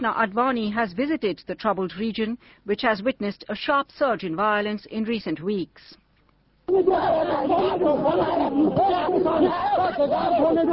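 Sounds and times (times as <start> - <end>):
speech: 0.0 - 6.0, 6.7 - 10.7
Kashmiri protesters shouting anti-government and anti-police slogans: 6.7 - 10.7.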